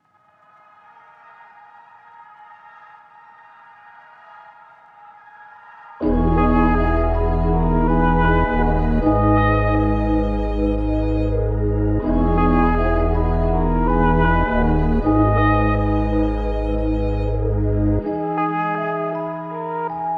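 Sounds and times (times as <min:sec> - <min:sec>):
melody in G sharp minor at 160 BPM: 0:06.0 - 0:20.1.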